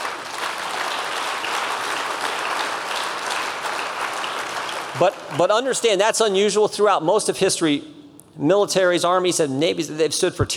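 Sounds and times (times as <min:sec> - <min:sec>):
audience applause: 0:00.0 - 0:05.8
speech: 0:05.0 - 0:10.5.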